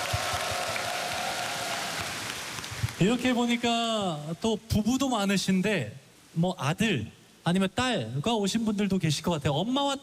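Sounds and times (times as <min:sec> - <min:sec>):
audience applause: 0:00.0 - 0:03.5
speech: 0:03.0 - 0:10.0.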